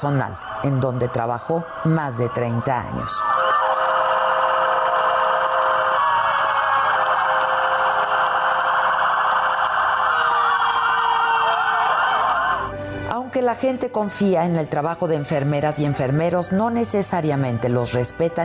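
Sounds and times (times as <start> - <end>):
speech: 0.0 - 3.3, 13.4 - 18.4
hospital sirens wailing: 0.0 - 12.7.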